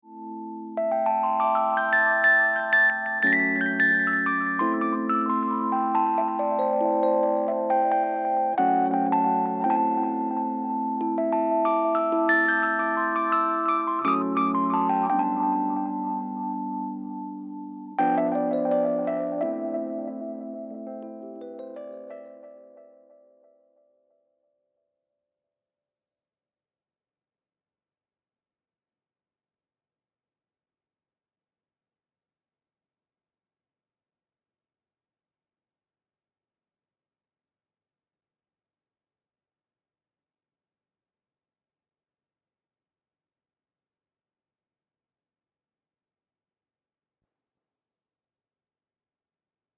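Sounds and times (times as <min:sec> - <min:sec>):
Rhodes electric piano: 0:00.2 - 0:23.6.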